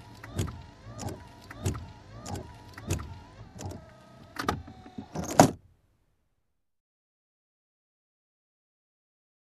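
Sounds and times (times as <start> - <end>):
windshield wiper: 0.0 - 5.6.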